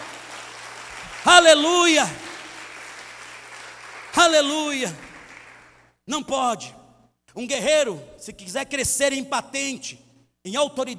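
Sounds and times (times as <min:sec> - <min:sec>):
audience applause: 0:00.0 - 0:05.8
speech: 0:01.2 - 0:02.2, 0:04.2 - 0:05.1, 0:06.1 - 0:06.8, 0:07.4 - 0:10.9.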